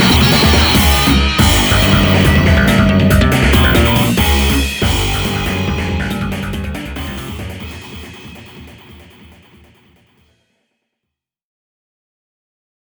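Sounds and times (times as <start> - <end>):
hard rock music: 0.0 - 10.2.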